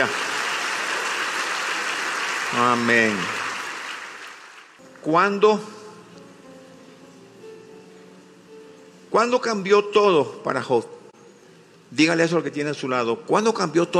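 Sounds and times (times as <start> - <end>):
speech: 0.0 - 0.2, 2.5 - 3.4, 5.0 - 5.8, 9.1 - 11.0, 11.9 - 13.9
audience applause: 0.0 - 4.8.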